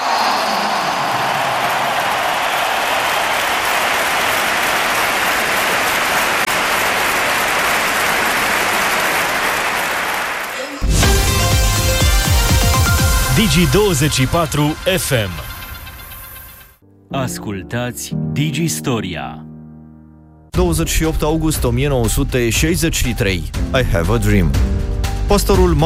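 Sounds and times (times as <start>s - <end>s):
stadium crowd cheering and applauding: 0.0s - 16.1s
speech: 13.5s - 15.5s, 17.1s - 19.4s, 20.6s - 25.8s.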